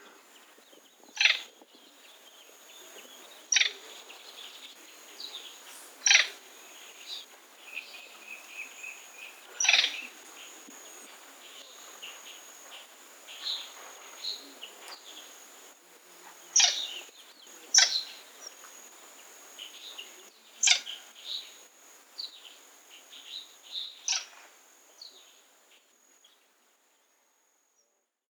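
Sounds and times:
blue coua calling: 1.0 - 1.6, 2.5 - 4.4, 5.2 - 15.4, 16.5 - 18.2, 20.0 - 21.1, 24.0 - 24.5.

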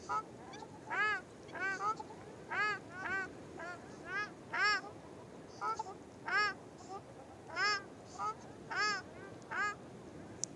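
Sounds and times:
ruddy shelduck giving nasal goose-like honks: 0.0 - 4.9, 5.6 - 6.6, 7.5 - 9.8.

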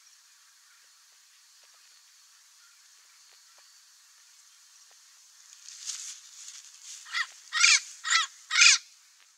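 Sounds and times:
Amazon parrot chattering and squawking: 7.1 - 8.8.

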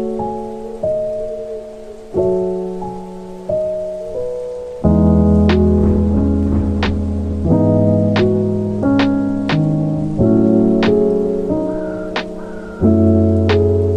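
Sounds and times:
music: 0.0 - 13.9
rain: 0.0 - 13.9
thunder: 4.9 - 13.9.

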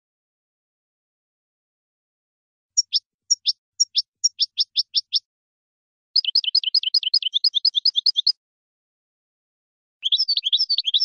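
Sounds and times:
finch calls: 2.8 - 5.3, 6.2 - 8.4, 10.0 - 11.0.

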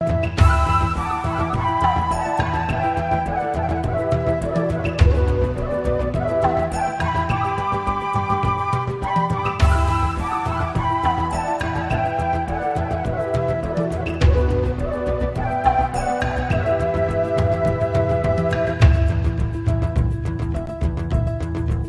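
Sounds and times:
flute: 0.0 - 21.8.

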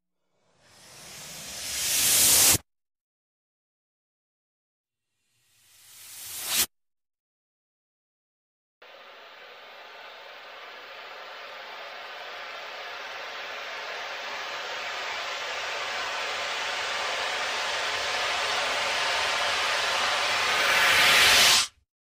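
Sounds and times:
vacuum cleaner: 0.5 - 2.6, 8.8 - 21.8.

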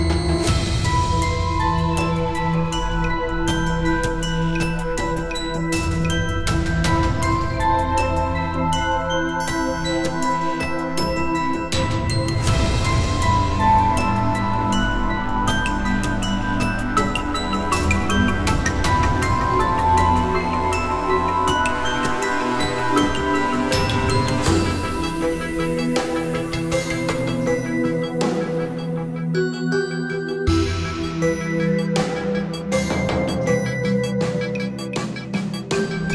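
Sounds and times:
mysterious instrumental music: 0.0 - 36.1.

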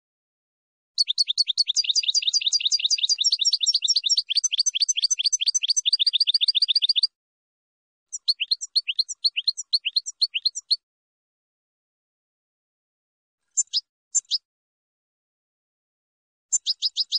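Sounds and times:
finch song: 1.0 - 7.2, 8.1 - 10.8, 13.4 - 14.5, 16.5 - 17.1.

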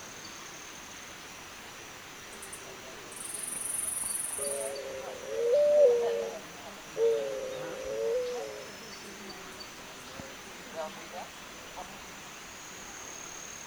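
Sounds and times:
Zenaida dove giving low even coos: 4.4 - 8.8.

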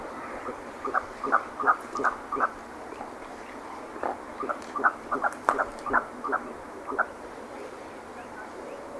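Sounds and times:
merganser croaking calls: 0.4 - 2.6, 4.0 - 7.1.

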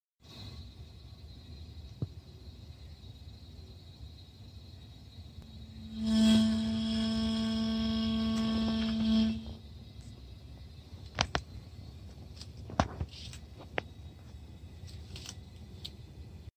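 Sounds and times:
gas meter: 5.0 - 16.5.

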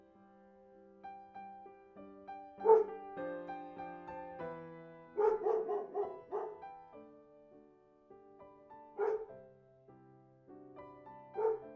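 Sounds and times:
dog barking: 2.6 - 2.9, 5.2 - 6.6, 9.0 - 9.3, 11.4 - 11.7.

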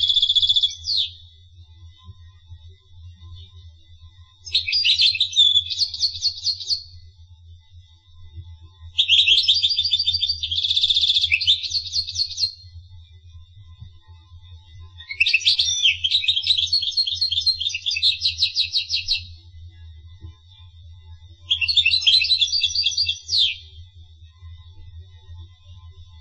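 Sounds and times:
finch song: 0.0 - 1.2, 4.4 - 6.9, 9.0 - 12.6, 15.0 - 19.3, 21.5 - 23.8
thin steady whistle: 0.0 - 1.4, 4.4 - 7.1, 9.0 - 12.8, 15.0 - 19.4, 21.5 - 23.8.

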